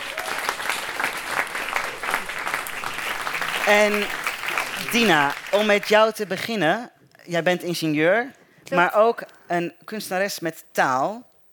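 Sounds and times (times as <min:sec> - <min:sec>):
audience applause: 0:00.0 - 0:06.1
speech: 0:03.7 - 0:04.2, 0:04.8 - 0:11.3.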